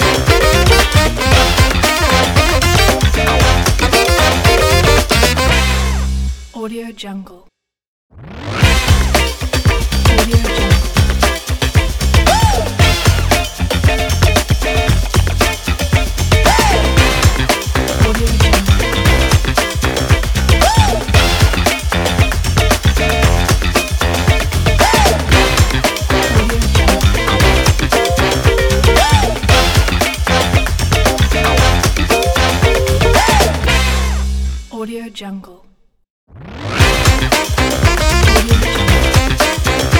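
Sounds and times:
energetic funk saxophone logo: 0:00.0 - 0:06.4, 0:08.6 - 0:34.6, 0:36.8 - 0:39.9.

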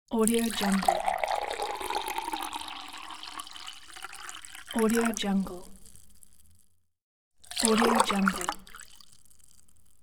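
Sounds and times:
water pouring into a glass: 0:00.2 - 0:05.2, 0:07.4 - 0:09.2.

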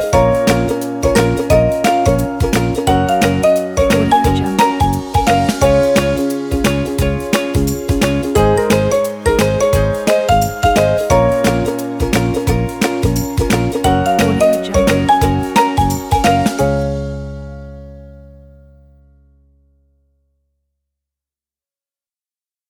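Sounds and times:
upbeat inspiring cheerful background music for kids: 0:00.0 - 0:17.9.

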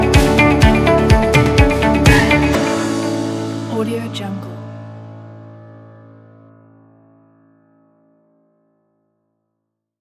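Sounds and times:
corporate motivational music: 0:00.0 - 0:05.6.

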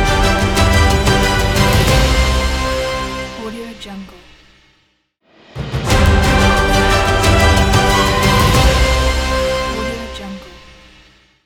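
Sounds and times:
award show fanfare ident: 0:00.0 - 0:03.4, 0:05.4 - 0:11.0.

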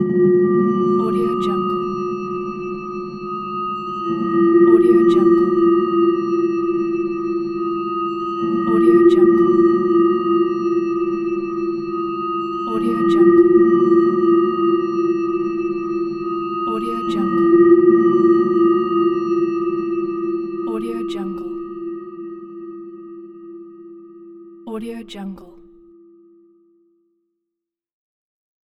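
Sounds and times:
fearful atmosphere: 0:00.0 - 0:07.6, 0:08.4 - 0:23.3.

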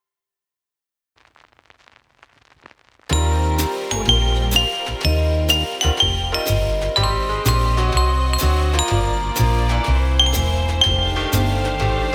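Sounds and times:
jazzy Christmas logo jingle: 0:03.1 - 0:12.1.

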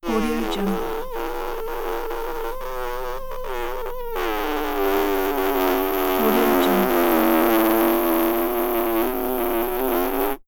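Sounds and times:
fart: 0:00.0 - 0:10.4.

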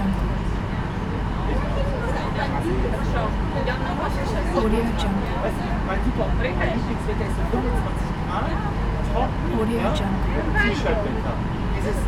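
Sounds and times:
ferry ambience: 0:00.0 - 0:12.0.

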